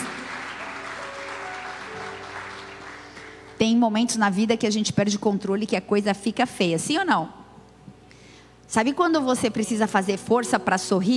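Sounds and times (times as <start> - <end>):
audience applause: 0.0 - 3.6
speech: 3.6 - 7.4, 8.7 - 11.1.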